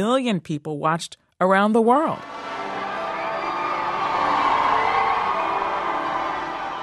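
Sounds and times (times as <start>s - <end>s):
speech: 0.0s - 2.5s
crowds in London streets cheering royal newlyweds leaving Westminster Abbey: 2.2s - 6.8s.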